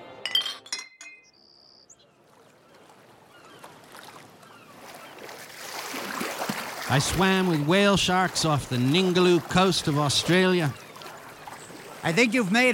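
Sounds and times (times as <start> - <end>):
glasses clinking in a toast: 0.2 - 1.3
speech: 6.9 - 10.8, 12.0 - 12.7.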